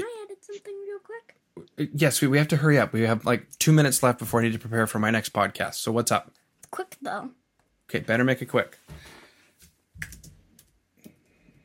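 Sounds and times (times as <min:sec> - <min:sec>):
speech: 0:01.2 - 0:09.1
faint computer keyboard typing: 0:10.0 - 0:11.6.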